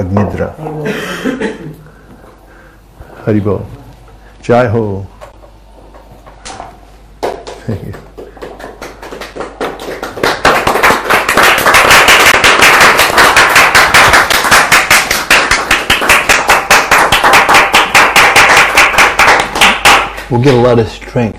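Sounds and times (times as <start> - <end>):
speech: 0.0 - 1.8, 3.2 - 3.8, 4.4 - 5.1, 7.7 - 8.0, 20.3 - 21.3
group clapping: 7.1 - 20.6.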